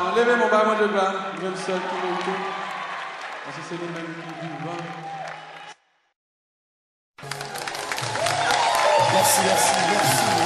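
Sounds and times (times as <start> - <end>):
speech: 0.0 - 2.6, 3.4 - 5.3, 9.2 - 10.4
audience applause: 1.2 - 5.8, 7.2 - 10.4.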